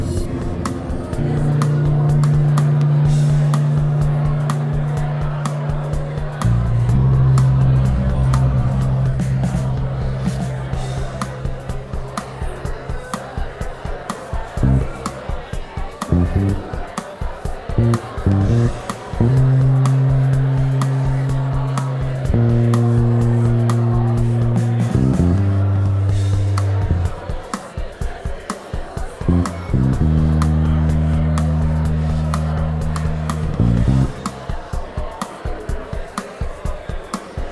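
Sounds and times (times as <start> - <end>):
bass improvising: 0.0 - 11.9, 14.6 - 15.3, 16.1 - 16.8, 17.7 - 27.3, 29.3 - 34.5
electronic drum beat: 0.0 - 37.5
steady crowd chatter: 0.0 - 37.5.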